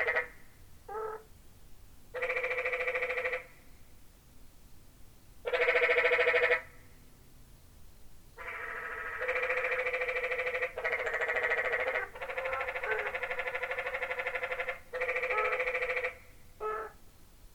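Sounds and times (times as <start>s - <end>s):
tree frogs trilling chorus in Zion Canyon: 0.0s - 1.3s, 2.2s - 3.6s, 5.4s - 6.9s, 8.4s - 17.0s.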